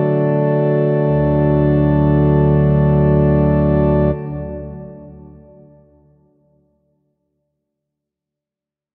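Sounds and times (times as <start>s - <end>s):
organ music: 0.0s - 6.1s.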